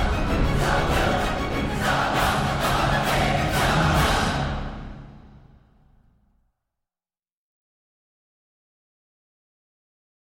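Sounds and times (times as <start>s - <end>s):
trailer choir: 0.0s - 5.6s.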